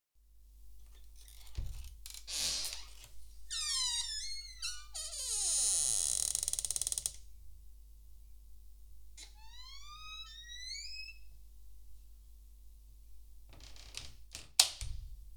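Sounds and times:
door creaking: 0:00.9 - 0:07.2, 0:09.2 - 0:11.3, 0:13.5 - 0:15.2.

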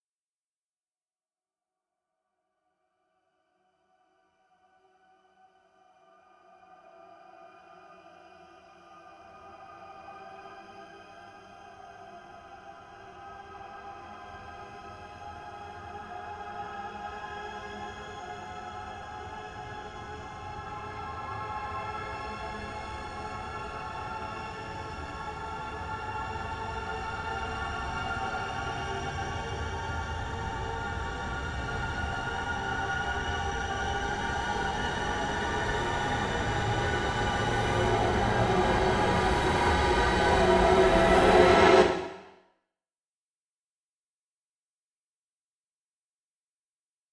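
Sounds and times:
horror music build-up: 0:21.0 - 0:42.3.

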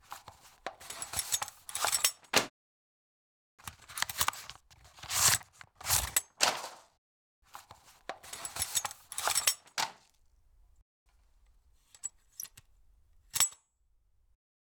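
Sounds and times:
mail slot flap: 0:00.7 - 0:02.5, 0:03.6 - 0:06.9, 0:07.6 - 0:10.1.

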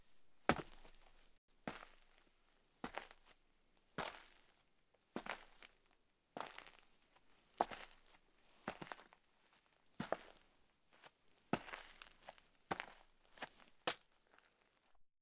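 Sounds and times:
sneakers walking slowly on gritty dirt: 0:00.5 - 0:02.2, 0:02.8 - 0:03.3, 0:07.6 - 0:08.1, 0:08.7 - 0:09.1, 0:10.0 - 0:10.4, 0:11.6 - 0:14.6.

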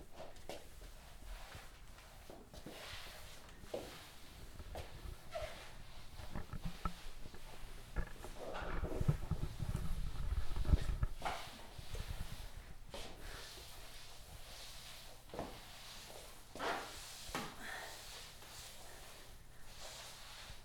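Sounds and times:
floor being cleaned: 0:00.1 - 0:20.6.

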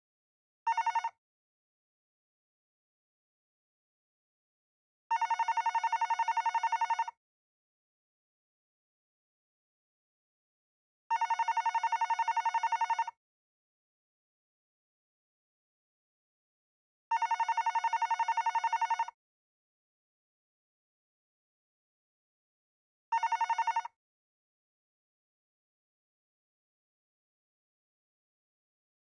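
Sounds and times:
hotel phone: 0:00.7 - 0:01.2, 0:05.1 - 0:07.2, 0:11.1 - 0:13.2, 0:17.1 - 0:19.2, 0:23.1 - 0:24.0.

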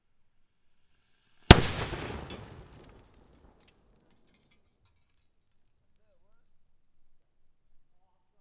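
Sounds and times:
sharp explosion: 0:01.5 - 0:03.2
lots of debris falling: 0:01.5 - 0:04.4.

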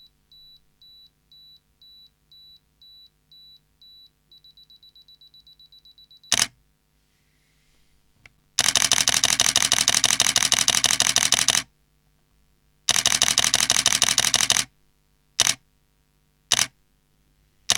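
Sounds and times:
camera shutter: 0:06.3 - 0:06.6, 0:08.6 - 0:11.7, 0:12.9 - 0:14.7, 0:15.4 - 0:15.6, 0:16.5 - 0:16.7.

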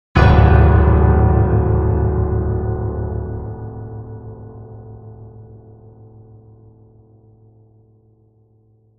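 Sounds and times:
piano scare sting: 0:00.2 - 0:06.4.

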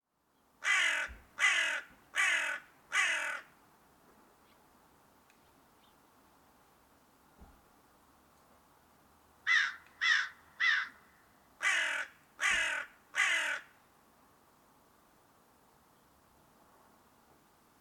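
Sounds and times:
crow giving harsh raucous caws: 0:00.6 - 0:03.5, 0:09.4 - 0:13.8.

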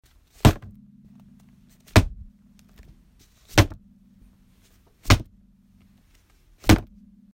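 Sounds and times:
book slamming: 0:00.4 - 0:00.8, 0:01.8 - 0:02.2, 0:03.4 - 0:03.8, 0:05.0 - 0:05.3, 0:06.6 - 0:07.0.

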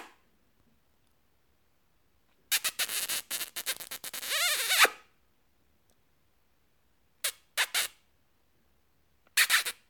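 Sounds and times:
lips kissing: 0:02.5 - 0:05.0, 0:07.3 - 0:08.0, 0:09.4 - 0:09.8.

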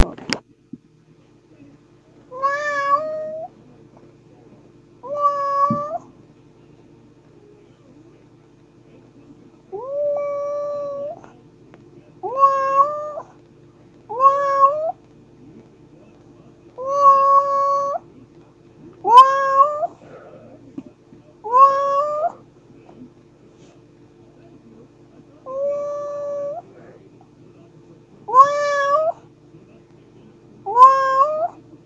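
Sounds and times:
domestic pet cat meowing: 0:02.3 - 0:03.5, 0:05.0 - 0:06.0, 0:09.8 - 0:11.2, 0:12.2 - 0:13.3, 0:14.1 - 0:15.0, 0:16.8 - 0:18.0, 0:19.0 - 0:19.9, 0:21.4 - 0:22.4, 0:25.5 - 0:26.6, 0:28.3 - 0:29.2, 0:30.7 - 0:31.6.

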